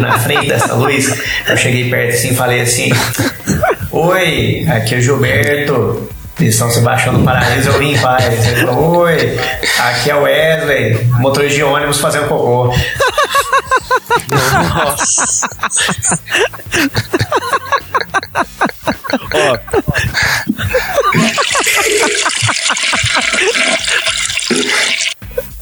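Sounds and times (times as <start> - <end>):
laughter: 0.0 - 5.9, 6.5 - 25.5
speech: 0.0 - 13.6, 14.2 - 17.1, 19.3 - 20.4
toilet flushing: 21.1 - 25.3.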